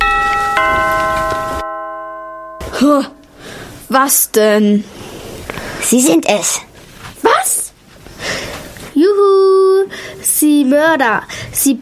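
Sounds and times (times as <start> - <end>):
doorbell ringing: 0.0 - 3.7
speech: 2.8 - 3.2, 3.9 - 5.0, 5.9 - 6.7, 9.1 - 11.8.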